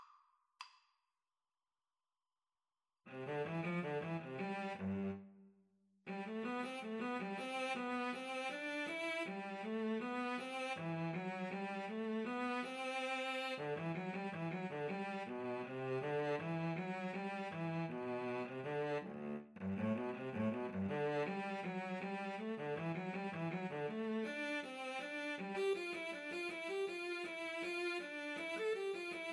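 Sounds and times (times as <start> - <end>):
violin and cello duet: 3.1 - 5.2, 6.1 - 29.2.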